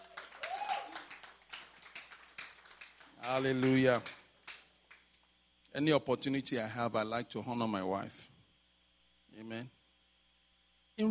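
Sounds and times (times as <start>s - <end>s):
short rising whistle or cheer: 0.0s - 1.1s
crowd applause: 0.0s - 5.0s
speech: 3.2s - 4.2s, 5.8s - 8.3s, 9.4s - 9.8s.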